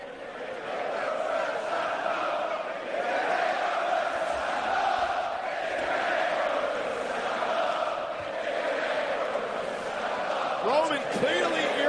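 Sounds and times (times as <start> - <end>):
huge arena crowd chanting in unison: 0.0 - 11.8.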